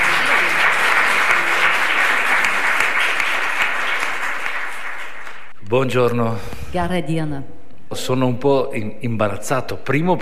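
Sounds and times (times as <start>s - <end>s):
stormy applause at a Catholic theology faculty lecture in Lithuania: 0.0s - 5.5s
speech: 5.7s - 10.2s.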